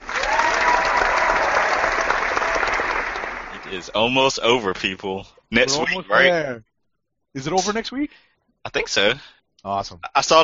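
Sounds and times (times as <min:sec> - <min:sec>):
cheering and applause: 0:00.0 - 0:04.2
speech: 0:03.7 - 0:06.7, 0:07.4 - 0:10.4.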